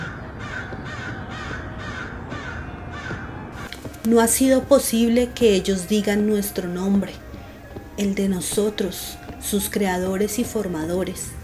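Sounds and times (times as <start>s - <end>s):
birds screeching and cawing: 0.0s - 11.4s
constant noisy background: 0.0s - 11.4s
speech: 4.0s - 7.2s, 8.0s - 11.4s.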